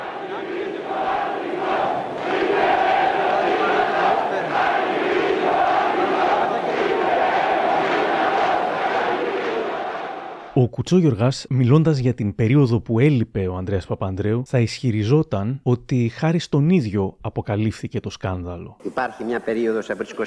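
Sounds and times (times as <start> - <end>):
crowd chanting at a rally: 0.0 - 10.6
speech: 10.6 - 20.2.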